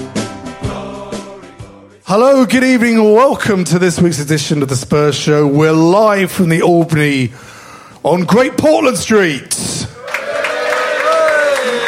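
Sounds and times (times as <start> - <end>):
speech: 2.1 - 9.8
live audience cheering: 10.0 - 11.8.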